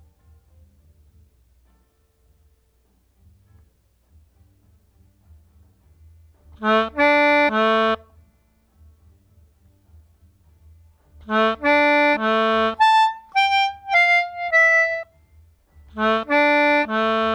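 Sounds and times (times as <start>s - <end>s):
melodica: 6.6s - 8.1s, 11.3s - 15.1s, 16.0s - 17.3s.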